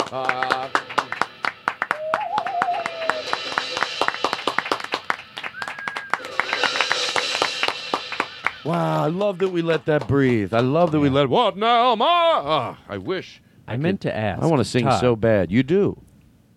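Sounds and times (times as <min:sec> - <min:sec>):
audience clapping: 0:00.0 - 0:11.3
speech: 0:00.1 - 0:00.9, 0:08.6 - 0:16.0
wavering whistles: 0:00.3 - 0:09.5
faint cheering voices: 0:01.9 - 0:03.7.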